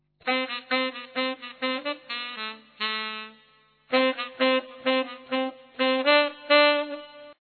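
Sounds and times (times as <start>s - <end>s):
saxophone: 0.2s - 7.4s.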